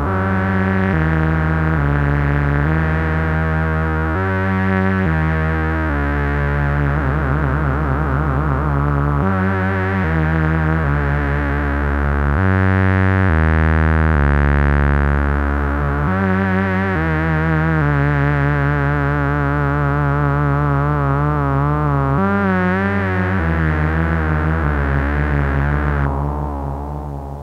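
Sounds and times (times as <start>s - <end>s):
synthesizer with LFO modulation: 0.0s - 27.4s.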